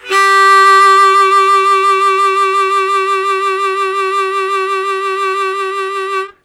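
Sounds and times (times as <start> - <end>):
harmonica sustaining G1 with strong vibrato: 0.0 - 6.4.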